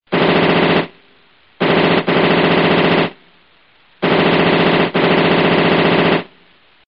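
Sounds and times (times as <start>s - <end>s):
machine gun firing: 0.1s - 1.0s, 1.6s - 3.2s, 4.0s - 6.3s.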